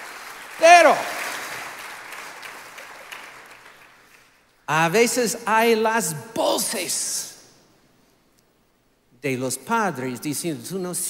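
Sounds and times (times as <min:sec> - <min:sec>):
audience applauding: 0:00.0 - 0:04.4
speech: 0:00.6 - 0:01.2, 0:04.7 - 0:07.3, 0:09.2 - 0:11.0.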